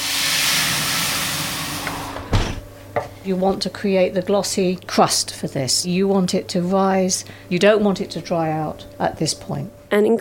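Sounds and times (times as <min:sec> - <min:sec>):
water hissing into steam in a hot oven: 0:00.0 - 0:02.3
speech: 0:03.2 - 0:10.1.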